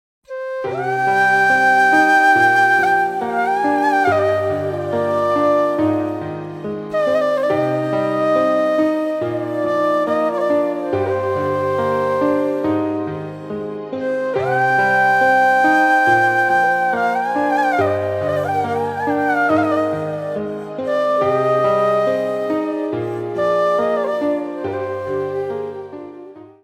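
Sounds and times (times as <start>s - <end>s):
flute: 0.2s - 26.6s.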